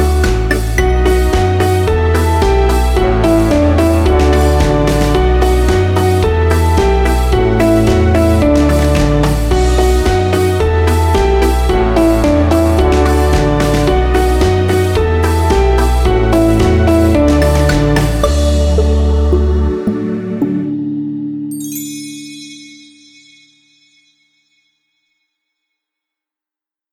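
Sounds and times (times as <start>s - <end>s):
karaoke singing: 0.0s - 21.3s.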